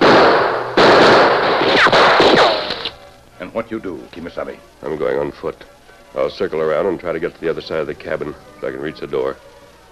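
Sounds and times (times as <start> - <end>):
gunshots exchanged: 0.0 - 3.0
whining bullet ricochets: 0.0 - 3.0
speech: 3.6 - 9.5.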